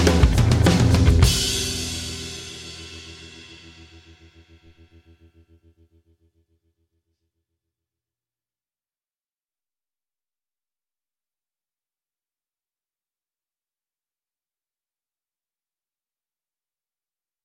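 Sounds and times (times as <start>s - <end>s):
drums: 0.0s - 4.8s.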